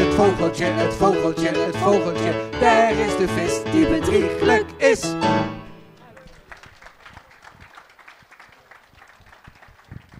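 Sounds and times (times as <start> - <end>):
speech: 0.2 - 5.6
audience applause: 5.9 - 10.1.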